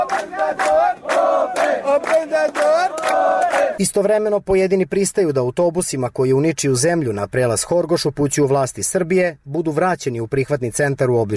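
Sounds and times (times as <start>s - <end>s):
crowd of refugees chanting to open gate: 0.0s - 3.8s
speech: 0.2s - 1.0s, 1.9s - 11.3s.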